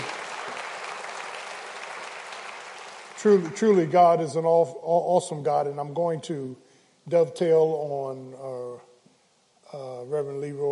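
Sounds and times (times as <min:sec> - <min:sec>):
church congregation clapping: 0:00.0 - 0:04.4
speech: 0:03.2 - 0:08.9, 0:09.7 - 0:10.7.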